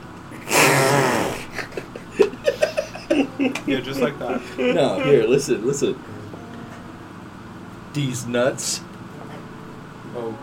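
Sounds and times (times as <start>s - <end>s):
voice blowing a raspberry imitating a fart: 0.4s - 1.6s
giggling: 1.3s - 5.4s
speech: 3.7s - 6.2s, 8.0s - 8.9s, 10.2s - 10.4s.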